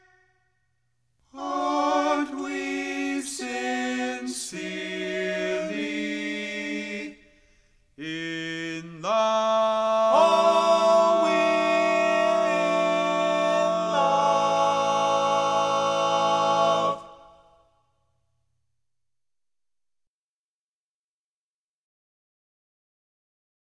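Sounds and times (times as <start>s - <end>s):
song with vocals: 0.0s - 0.4s, 1.2s - 17.6s.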